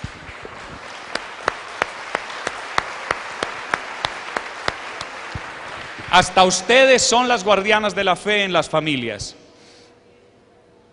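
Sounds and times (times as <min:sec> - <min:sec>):
audience applause: 0:00.0 - 0:06.9
speech: 0:06.1 - 0:09.4.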